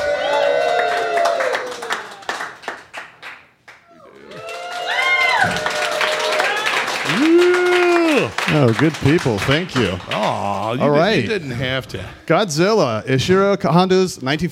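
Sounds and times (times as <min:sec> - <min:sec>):
whoops and hollers: 0:00.0 - 0:02.3, 0:03.8 - 0:08.4
crowd cheering and clapping: 0:00.0 - 0:11.2
speech: 0:08.5 - 0:14.5.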